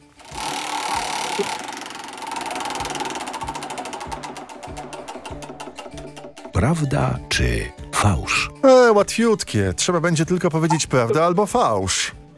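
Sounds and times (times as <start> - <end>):
large game wheel spinning in a studio: 0.2 - 6.1
speech: 1.4 - 1.6, 6.6 - 12.2.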